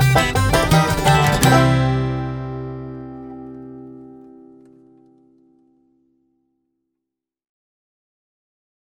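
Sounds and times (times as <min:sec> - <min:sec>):
train song: 0:00.0 - 0:04.4.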